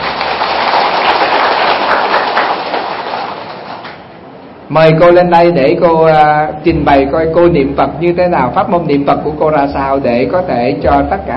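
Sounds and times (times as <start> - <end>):
audience applause: 0.0 - 4.0
speech: 4.7 - 11.3.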